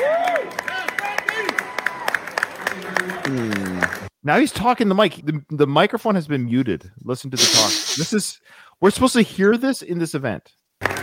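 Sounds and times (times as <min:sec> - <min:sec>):
thin smattering of applause from a handful of people: 0:00.0 - 0:04.1
speech: 0:04.2 - 0:11.0.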